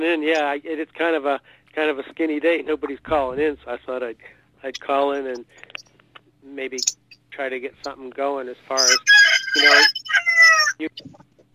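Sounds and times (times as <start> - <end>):
speech: 0.0 - 11.3
rooster crowing: 8.8 - 10.9
chickens clucking: 8.8 - 11.2.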